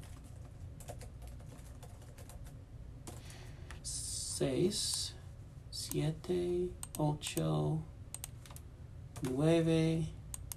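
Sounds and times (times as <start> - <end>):
typing on a keyboard: 0.8 - 3.2
speech: 4.4 - 5.1, 5.9 - 7.9, 9.2 - 10.2.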